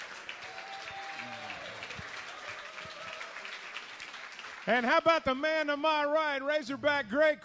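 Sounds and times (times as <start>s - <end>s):
audience applause: 0.0s - 5.1s
speech: 4.7s - 7.4s.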